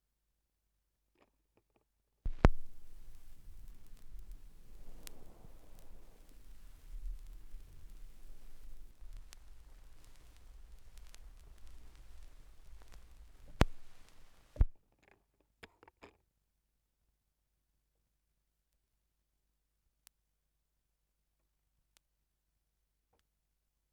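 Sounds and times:
vinyl record noise: 2.3s - 14.8s.

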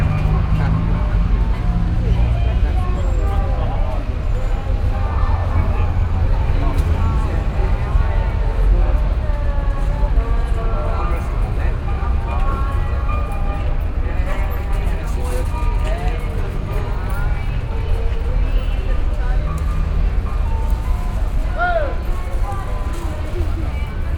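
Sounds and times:
street ambience in Brazil: 0.0s - 24.1s.

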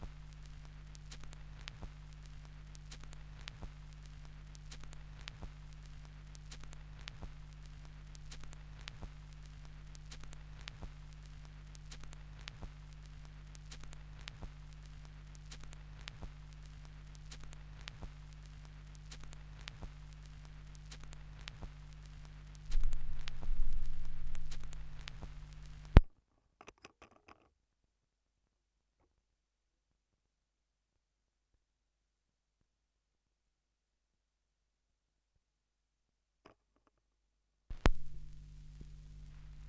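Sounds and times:
vinyl record crackle: 0.0s - 26.1s, 37.7s - 39.6s.

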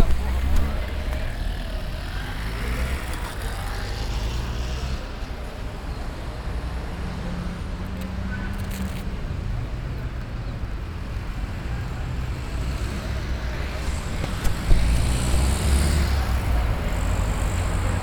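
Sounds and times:
street ambience in Brazil: 0.0s - 18.0s.

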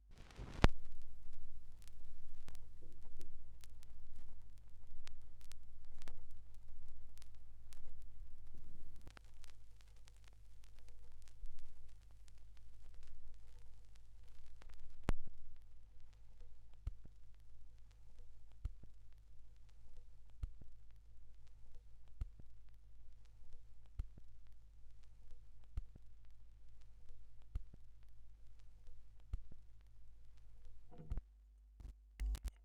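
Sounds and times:
vinyl record noise: 0.1s - 31.2s, 31.8s - 32.5s.

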